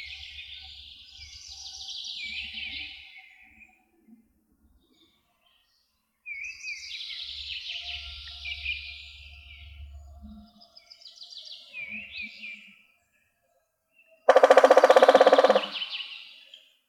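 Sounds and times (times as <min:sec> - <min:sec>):
woodpecker drumming: 0:14.3 - 0:16.0
songbirds twittering: 0:14.3 - 0:16.1.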